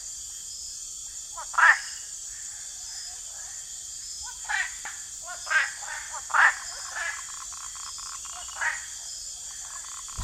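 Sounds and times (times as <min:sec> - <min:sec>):
continuous high insect hum: 0:00.0 - 0:10.2
rocket treefrog chorus with rasping quack-like calls: 0:01.4 - 0:02.6, 0:04.2 - 0:10.2.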